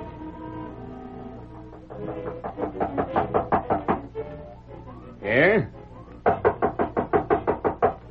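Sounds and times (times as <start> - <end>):
knocking on a door: 1.7 - 4.2, 6.2 - 8.1.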